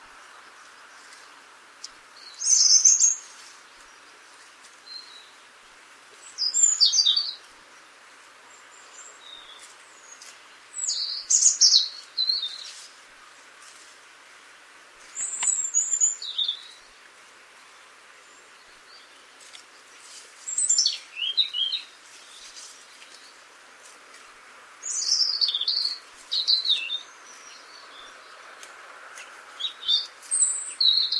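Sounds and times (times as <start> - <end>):
faint hiss: 0.0 - 31.1
European robin singing high warbling phrases: 2.2 - 3.4, 6.3 - 7.4, 8.8 - 12.8, 15.2 - 16.9, 20.5 - 22.5, 24.8 - 28.2, 29.6 - 31.1.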